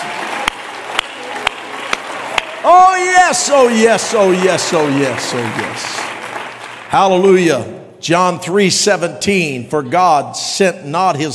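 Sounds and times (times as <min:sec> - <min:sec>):
audience clapping hands: 0:00.0 - 0:07.5
speech: 0:02.6 - 0:06.1, 0:06.9 - 0:11.3.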